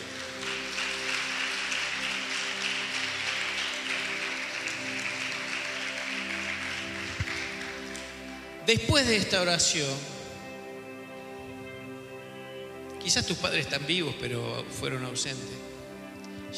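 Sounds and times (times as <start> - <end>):
audience applause: 0.0 - 8.6
speech: 8.7 - 10.1, 13.1 - 15.8.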